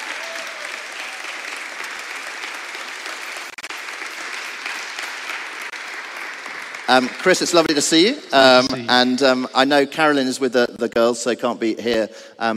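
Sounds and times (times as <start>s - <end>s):
audience applause: 0.0s - 8.2s
speech: 6.9s - 12.5s.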